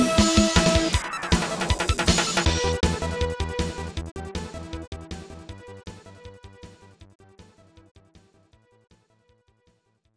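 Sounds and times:
battle music: 0.0 - 6.9.

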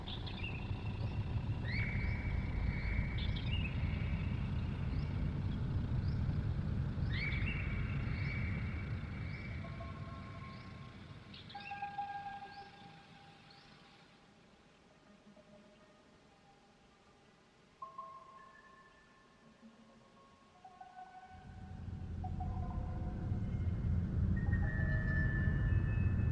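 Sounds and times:
tense encounter ambience: 0.0 - 11.3, 21.4 - 26.3.

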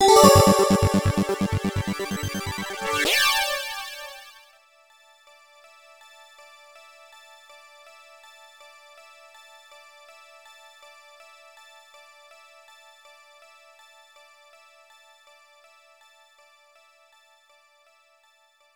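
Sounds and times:
mission complete jingle: 0.0 - 4.0.

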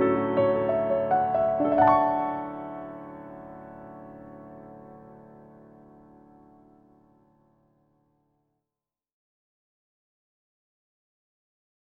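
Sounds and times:
instrumental music: 0.0 - 7.7.

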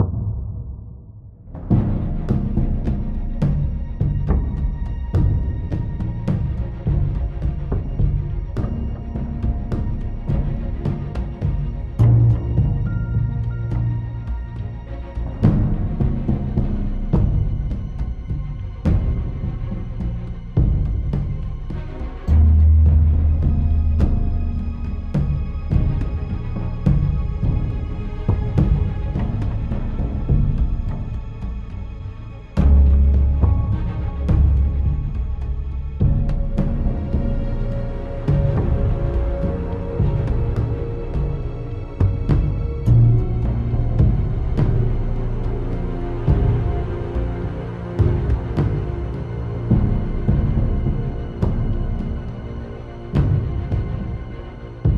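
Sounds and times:
tense music loop: 0.0 - 54.9.

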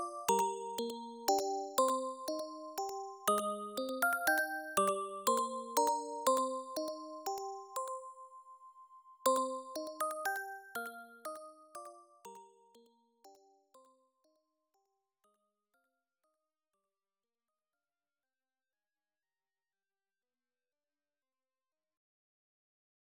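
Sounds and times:
music box: 0.0 - 8.6, 9.3 - 12.9.

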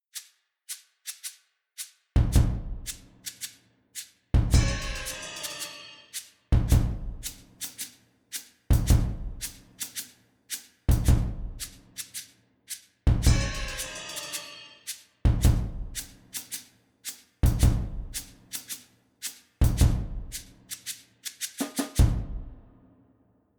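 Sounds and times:
drum practice: 2.2 - 3.0, 4.4 - 7.5, 8.7 - 9.9, 10.9 - 11.8, 13.1 - 14.7, 15.3 - 16.2, 17.4 - 18.3, 19.6 - 20.5, 21.5 - 22.8.

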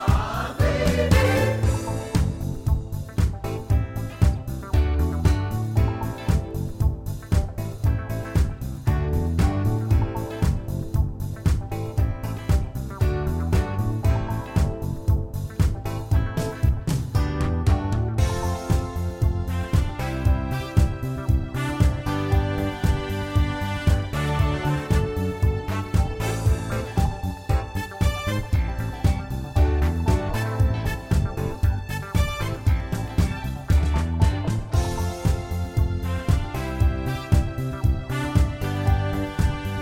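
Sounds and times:
disco karaoke music: 0.0 - 39.8.

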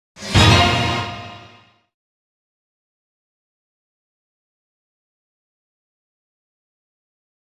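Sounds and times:
fanfare: 0.2 - 1.8.

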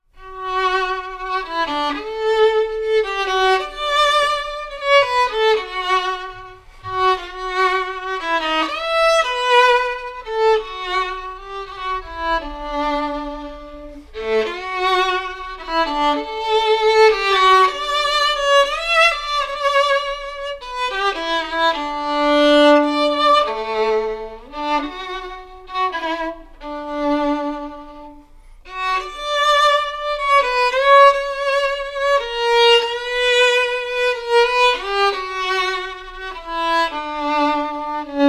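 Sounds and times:
violin: 0.0 - 38.2.

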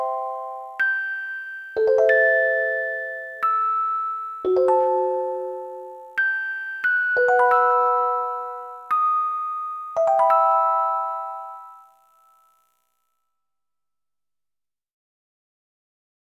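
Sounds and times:
music box: 0.0 - 12.6.

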